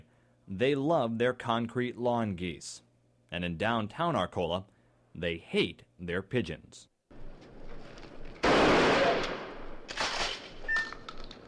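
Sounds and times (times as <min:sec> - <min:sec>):
speech: 0:00.5 - 0:06.9
12-gauge shotgun firing at pigeons: 0:08.4 - 0:10.4.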